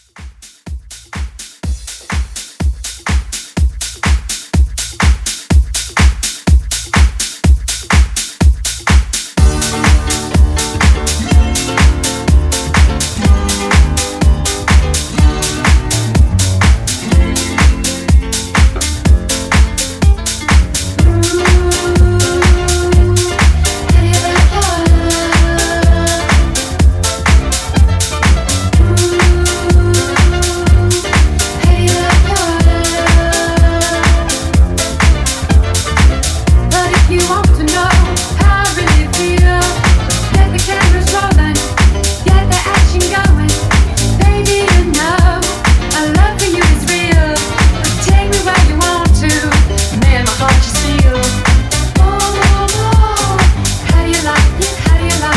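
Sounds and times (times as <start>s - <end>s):
1970s-style dance house music at 124 BPM: 0.0s - 55.3s.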